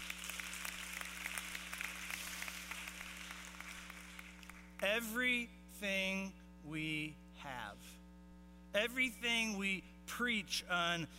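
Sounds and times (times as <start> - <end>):
crowd clapping: 0.0 - 4.9
low electrical hum: 0.0 - 11.1
speech: 5.0 - 8.0, 8.7 - 11.1.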